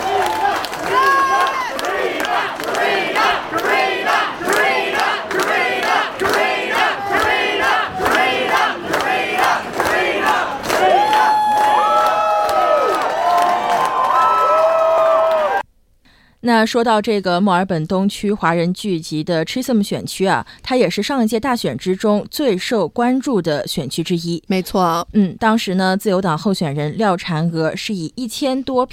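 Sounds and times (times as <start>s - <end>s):
whoops and shouts from many voices: 0.0s - 1.8s, 10.8s - 15.6s
rhythmic clapping or chanting: 0.0s - 14.0s
crowd cheering at candidate's arrival: 0.0s - 15.6s
speech: 16.6s - 28.9s.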